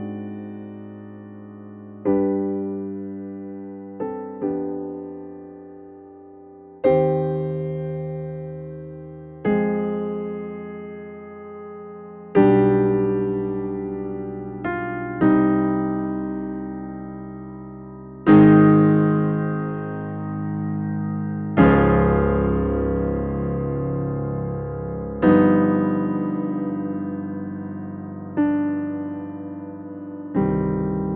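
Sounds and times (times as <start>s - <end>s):
loud Steinway D grand piano with open lid: 0.0s - 31.1s.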